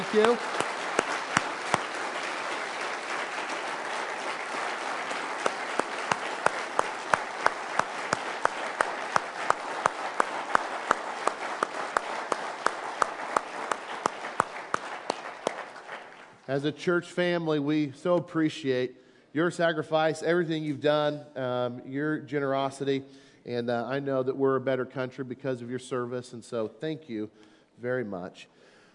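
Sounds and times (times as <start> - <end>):
audience applauding veterans: 0.0 - 16.4
speech: 0.1 - 0.5, 16.6 - 28.7.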